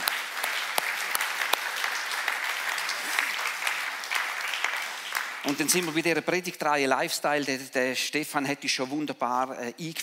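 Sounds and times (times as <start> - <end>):
audience applause: 0.0 - 6.2
speech: 5.4 - 10.0.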